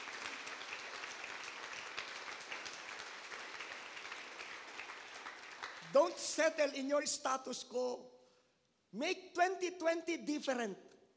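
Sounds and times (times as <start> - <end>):
audience clapping in praise: 0.0 - 6.4
speech: 5.9 - 8.2, 8.9 - 10.8.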